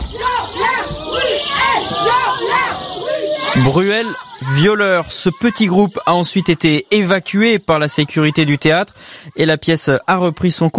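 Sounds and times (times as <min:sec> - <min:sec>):
women protesters shouting in a theatre: 0:00.0 - 0:06.0
crowd noise: 0:00.0 - 0:10.7
speech: 0:03.6 - 0:10.7.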